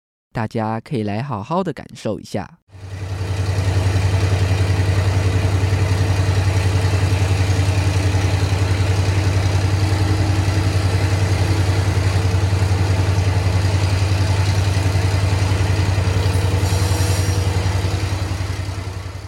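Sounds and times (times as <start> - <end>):
speech: 0.4 - 2.9
diesel-electric locomotive running, recorded onboard: 2.7 - 19.2
brief hiss: 16.2 - 18.0.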